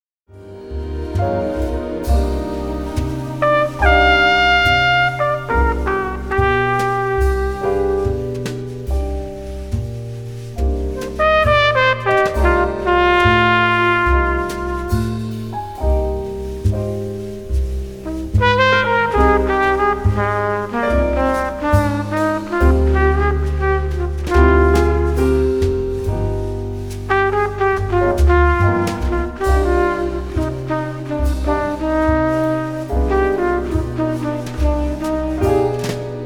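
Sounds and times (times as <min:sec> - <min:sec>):
brass instruments: 0:00.3 - 0:36.2.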